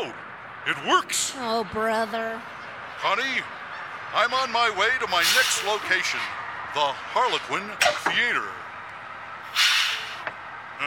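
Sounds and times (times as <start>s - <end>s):
speech: 0.1s - 8.6s
bus air brake hissing: 5.2s - 5.9s, 9.5s - 10.3s.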